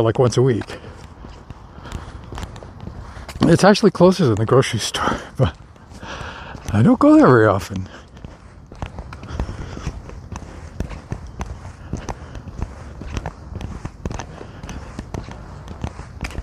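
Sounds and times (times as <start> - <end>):
speech: 0.0 - 1.0, 3.4 - 8.0
squeaky boot footsteps while walking: 0.4 - 16.4.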